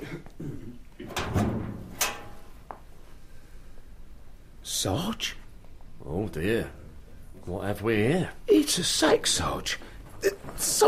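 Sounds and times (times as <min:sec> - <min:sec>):
sergeant's locker being opened: 0:01.0 - 0:02.6
speech: 0:04.8 - 0:05.4, 0:06.3 - 0:06.8, 0:07.4 - 0:10.8.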